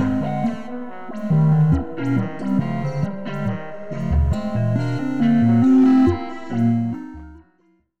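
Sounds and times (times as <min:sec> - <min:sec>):
sequencer: 0:00.0 - 0:07.4.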